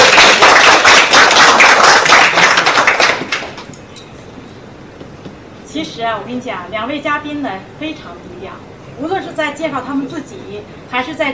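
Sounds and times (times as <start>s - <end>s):
audience applause: 0.0s - 3.7s
speech: 6.0s - 11.3s.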